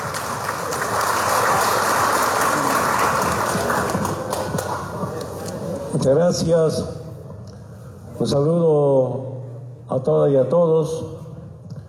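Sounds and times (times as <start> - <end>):
audience applause: 0.0 - 5.3
speech: 6.1 - 7.0, 8.2 - 9.3, 9.9 - 11.2.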